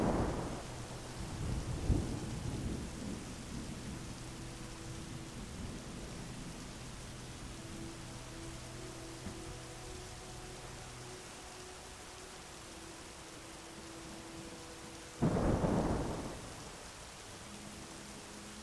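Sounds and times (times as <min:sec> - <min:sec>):
low thunder rumbles: 0:00.0 - 0:04.1, 0:15.2 - 0:16.8
faint sustained tones: 0:00.0 - 0:18.6
steady soft rain hissing: 0:00.0 - 0:18.6.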